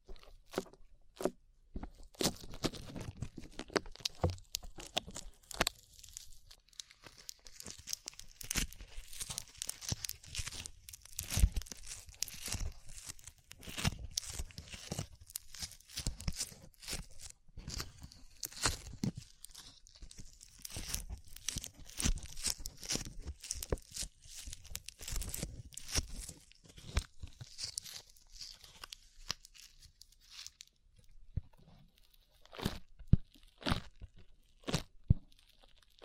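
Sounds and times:
sticky slime squished and pulled: 0.0 - 36.0.

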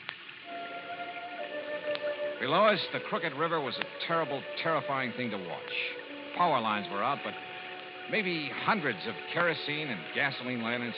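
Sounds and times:
hard rain pouring down: 0.0 - 10.9
speech: 2.4 - 7.5, 8.1 - 10.9.

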